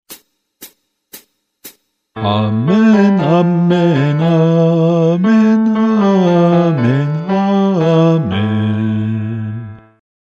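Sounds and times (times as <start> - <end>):
bass guide voice chanting a doxology: 2.2 - 10.0.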